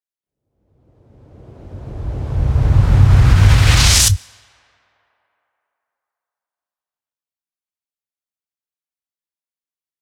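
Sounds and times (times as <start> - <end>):
riser sweep: 1.3 - 4.3.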